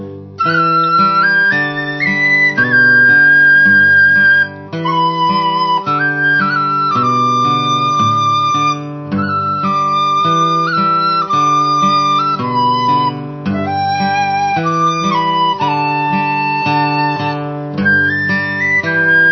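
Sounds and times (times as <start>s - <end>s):
flute: 0.4s - 19.3s.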